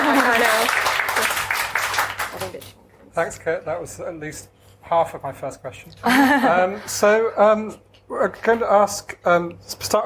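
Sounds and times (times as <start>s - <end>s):
audience applause at a book talk: 0.0s - 2.5s
speech: 3.2s - 10.0s.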